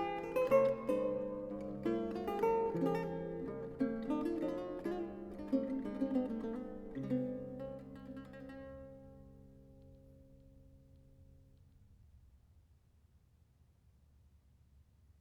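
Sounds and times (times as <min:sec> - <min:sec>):
lute solo: 0:00.0 - 0:11.0.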